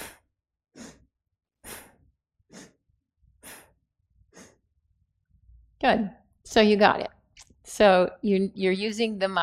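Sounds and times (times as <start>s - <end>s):
slow-motion Bhastrika breathing with strong exhales and inhales: 0.0s - 4.6s
speech: 5.8s - 9.4s.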